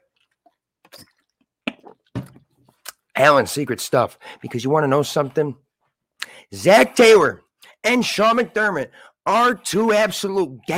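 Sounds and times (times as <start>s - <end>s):
person slurping and gulping a drink: 0.0s - 3.1s
speech: 3.2s - 5.6s, 6.5s - 10.7s.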